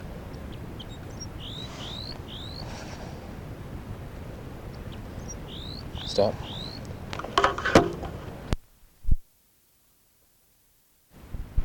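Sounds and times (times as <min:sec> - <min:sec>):
female crossbill alarm calls: 0:00.0 - 0:08.5
low rumble: 0:00.0 - 0:09.1
speech: 0:06.2 - 0:06.6.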